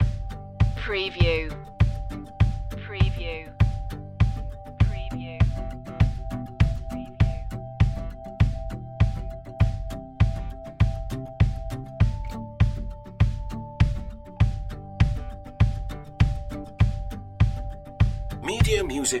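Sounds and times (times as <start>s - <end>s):
music loop: 0.0s - 19.1s.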